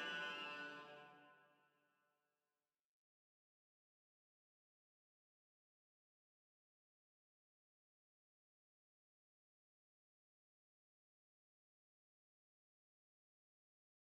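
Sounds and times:
cello playing: 0.0 - 1.3.

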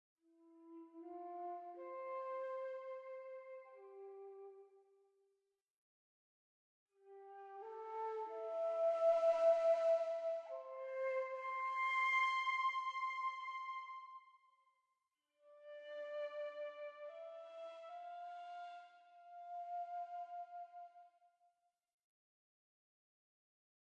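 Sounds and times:
flute: 0.3 - 4.8, 7.0 - 14.4, 15.4 - 21.2.

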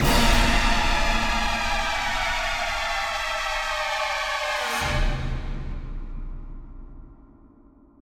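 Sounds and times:
music sting: 0.0 - 7.0.

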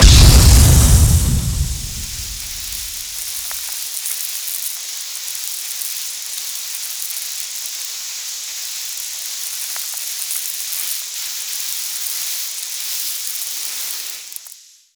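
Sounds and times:
grenade explosion: 0.0 - 3.6.

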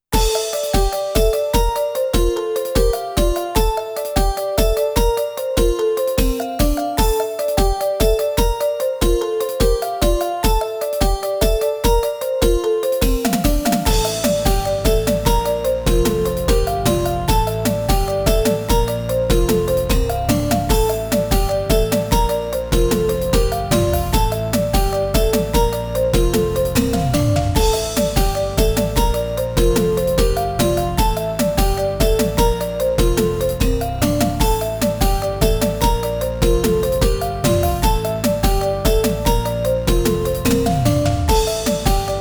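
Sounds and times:
music on a Roland SC-88 sound module: 0.2 - 42.2.

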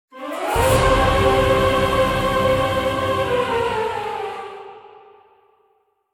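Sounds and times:
jingle: 0.2 - 4.4.

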